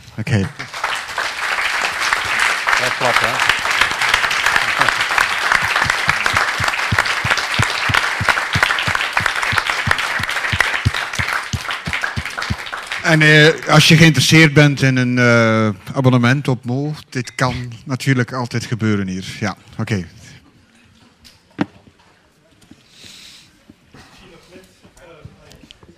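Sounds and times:
speech: 0.2s - 0.7s, 3.0s - 3.6s, 13.1s - 20.2s
audience applause: 0.2s - 13.9s.

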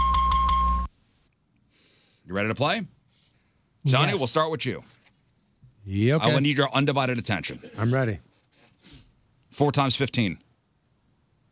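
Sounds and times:
game show correct-answer chime: 0.0s - 0.9s
speech: 2.3s - 3.0s, 3.8s - 5.0s, 5.8s - 9.0s, 9.6s - 10.4s.

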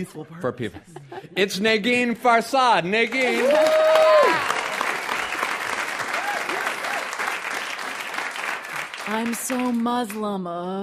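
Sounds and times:
speech: 0.0s - 4.5s, 9.1s - 10.8s
audience applause: 3.1s - 10.3s
voice cheering: 3.2s - 4.8s, 6.1s - 7.2s.

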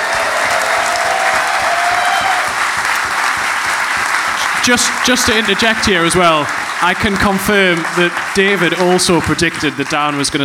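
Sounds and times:
applause: 0.0s - 10.4s
speech: 4.7s - 10.4s.

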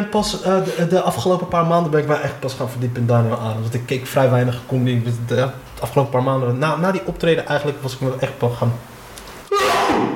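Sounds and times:
speech: 0.0s - 8.9s
sneeze: 9.5s - 10.1s.

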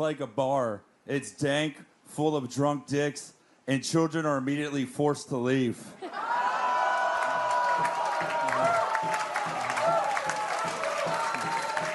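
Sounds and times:
speech: 0.0s - 6.3s
cheering, whoops and scattered shouts: 6.0s - 11.9s
audience applause: 6.2s - 11.9s.

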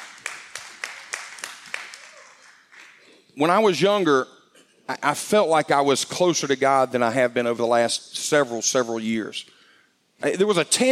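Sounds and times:
scattered applause: 0.0s - 3.1s
audience clapping in a steady rhythm: 0.0s - 3.2s
speech: 3.4s - 9.6s, 10.2s - 10.9s.

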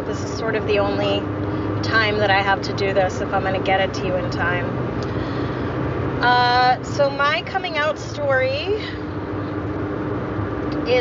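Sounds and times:
car interior driving noise: 0.0s - 10.9s
speech: 0.4s - 4.9s, 6.2s - 9.0s.

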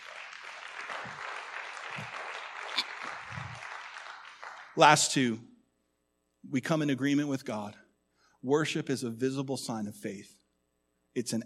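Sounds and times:
crowd applauding: 0.0s - 5.1s
speech: 4.8s - 5.5s, 6.5s - 7.8s, 8.4s - 10.4s, 11.2s - 11.4s.

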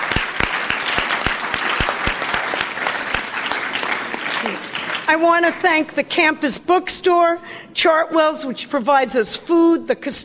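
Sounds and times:
audience round of applause: 0.0s - 5.2s
speech: 5.1s - 10.2s.

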